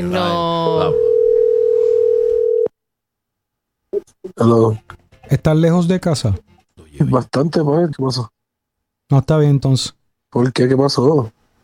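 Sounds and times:
speech: 0.0s - 1.0s, 4.4s - 8.4s, 9.1s - 11.4s
telephone ringing tone on a call: 0.7s - 2.7s.

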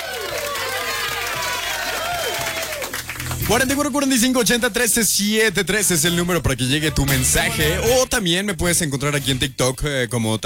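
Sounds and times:
applause: 0.0s - 4.0s
speech: 3.5s - 10.4s.

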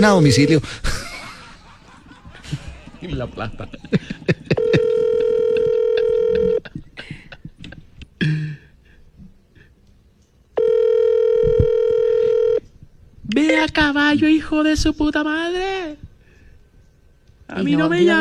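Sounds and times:
outgoing phone call ringing tone: 0.0s - 0.7s, 4.5s - 6.7s, 10.6s - 12.6s
speech: 0.0s - 1.0s, 2.5s - 4.6s, 13.4s - 16.0s, 17.5s - 18.1s
laughter: 0.5s - 8.0s.

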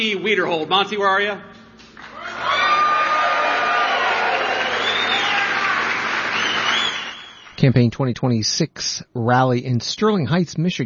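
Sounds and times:
speech: 0.0s - 1.6s, 7.6s - 10.8s
rally crowd applauding and cheering: 2.0s - 7.6s.

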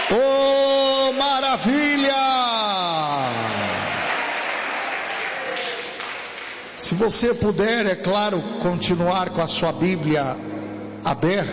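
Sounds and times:
audience clapping: 0.0s - 2.1s, 3.0s - 6.8s
speech: 0.1s - 2.3s, 6.9s - 11.5s.

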